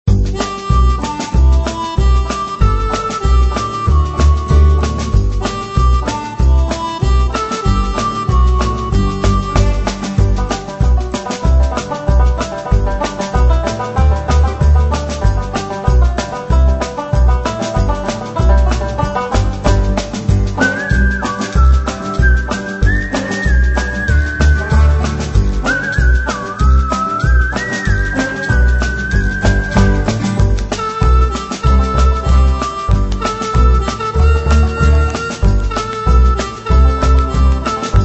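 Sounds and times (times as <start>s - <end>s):
music loop: 0.1s - 38.0s.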